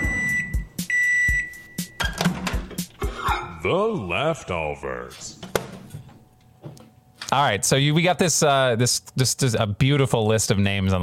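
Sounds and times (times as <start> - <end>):
microwave oven beeping: 0.0 - 2.6
speech: 3.6 - 5.4, 7.3 - 11.0.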